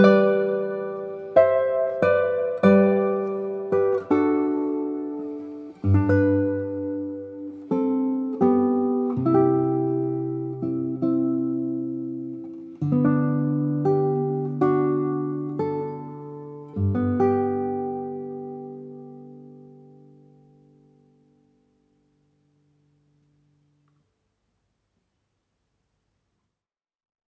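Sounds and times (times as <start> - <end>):
hymn arranged for guitar: 0.0 - 21.4.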